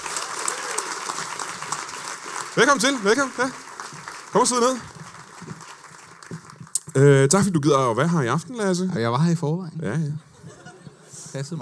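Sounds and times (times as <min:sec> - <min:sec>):
audience applause at Comedy Zoo in Aarhus welcoming a comedian: 0:00.0 - 0:07.0
speech: 0:02.6 - 0:03.6, 0:04.3 - 0:05.0, 0:07.0 - 0:10.3, 0:11.4 - 0:11.6
laughter: 0:10.2 - 0:11.5.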